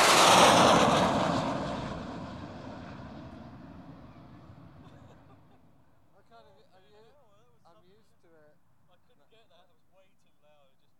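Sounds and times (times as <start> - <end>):
Red Arrows jets buzzing past: 0.0 - 5.6.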